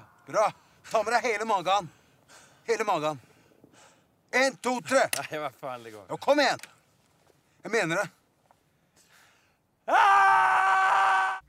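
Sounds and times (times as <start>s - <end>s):
speech: 0.3s - 2.0s, 2.7s - 3.3s, 4.3s - 6.7s, 7.6s - 8.2s, 9.9s - 10.6s
person screaming: 9.9s - 11.4s.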